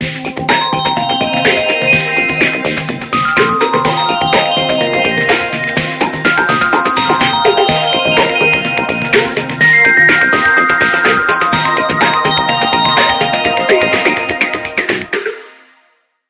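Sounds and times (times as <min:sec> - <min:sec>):
alarm clock ringing: 0:00.5 - 0:15.2.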